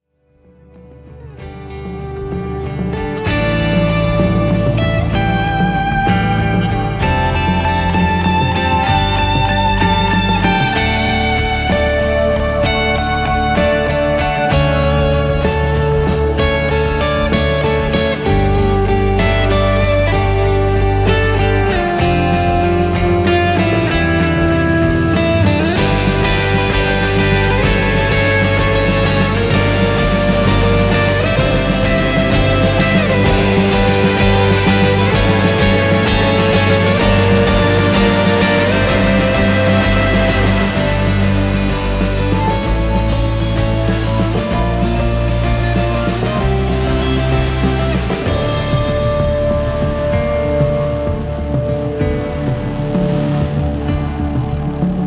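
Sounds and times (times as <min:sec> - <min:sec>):
cinematic guitars: 0:00.0 - 0:55.0.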